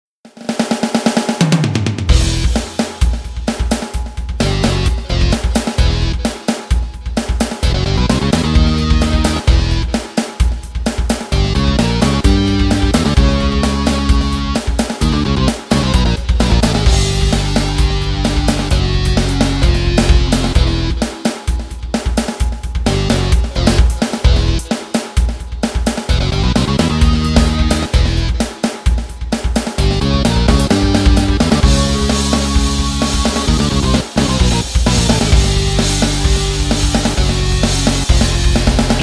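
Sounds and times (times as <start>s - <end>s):
fast groove: 0.2s - 39.0s.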